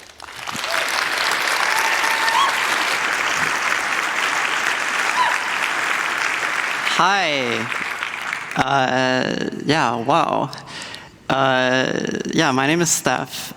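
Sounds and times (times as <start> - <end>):
audience applause: 0.0 - 8.7
speech: 7.0 - 7.8, 8.6 - 10.6, 11.3 - 13.5.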